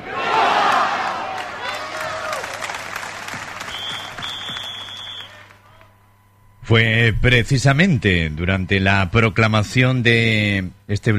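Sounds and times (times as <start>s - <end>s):
crowd cheering for Spain: 0.0s - 6.0s
speech: 6.7s - 11.1s.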